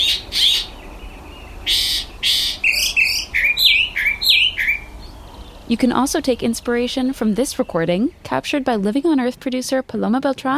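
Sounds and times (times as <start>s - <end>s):
mockingbird singing its morning song: 0.0s - 9.3s
speech: 5.7s - 10.5s.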